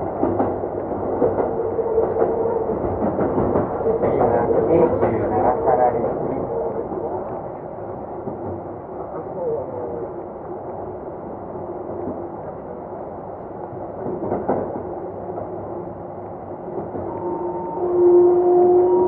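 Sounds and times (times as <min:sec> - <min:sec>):
Keikyu 2100 series train rumbling between Yokohama and Misakiguchi: 0:00.0 - 0:19.0
voice: 0:04.0 - 0:07.2, 0:09.1 - 0:10.1.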